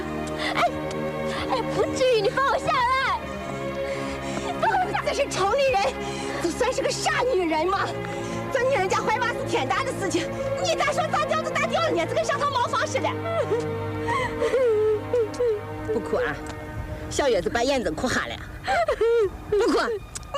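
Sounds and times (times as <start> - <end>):
woman crying: 0.3 - 3.3, 4.0 - 6.6, 12.5 - 15.8, 18.5 - 20.3
speech: 5.2 - 14.8, 15.4 - 20.3.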